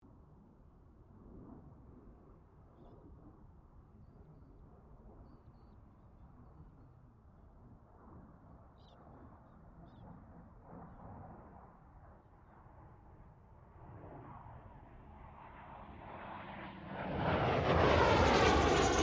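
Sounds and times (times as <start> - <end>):
distant CA-27 Sabre aircraft passing: 7.9 - 19.0.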